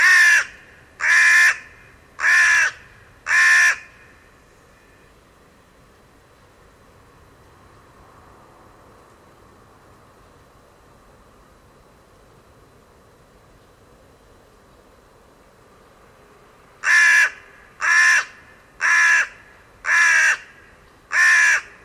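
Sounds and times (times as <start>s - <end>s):
bird giving harsh crow-like caws: 0.0s - 4.0s, 16.8s - 21.8s.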